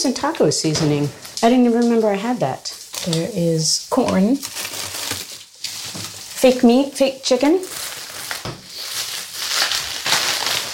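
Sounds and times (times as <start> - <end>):
speech: 0.0 - 4.9, 6.4 - 8.6
plastic bag crinkling: 1.4 - 10.7.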